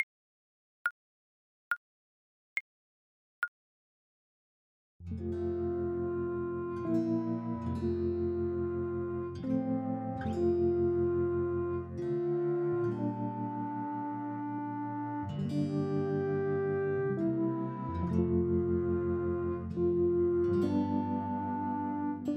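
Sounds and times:
bassoon: 5.2 - 22.3.

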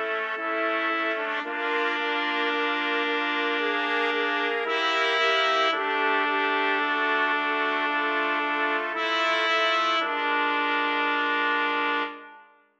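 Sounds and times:
trumpet quartet: 0.0 - 12.6.

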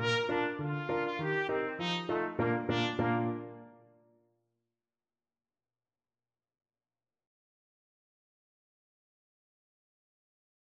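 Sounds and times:
polka music: 0.0 - 3.8
trumpet: 0.0 - 3.9.

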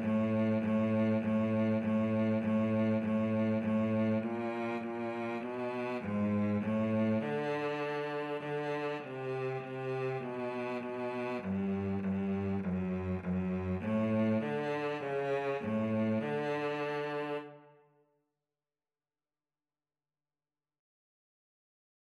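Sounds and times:
flute and cello duet: 0.0 - 17.6.

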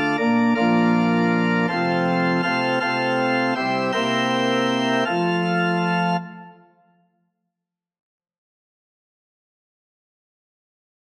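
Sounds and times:
organ: 0.0 - 7.0.

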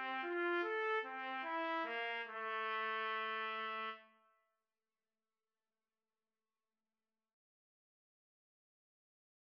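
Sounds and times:
trumpet duet: 0.0 - 4.0.

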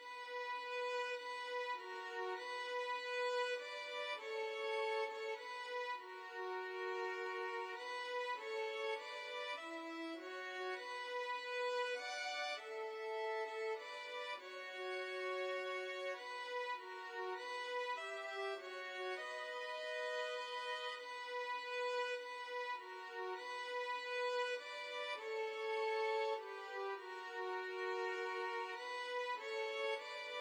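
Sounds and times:
carol violin duet: 0.0 - 30.3.

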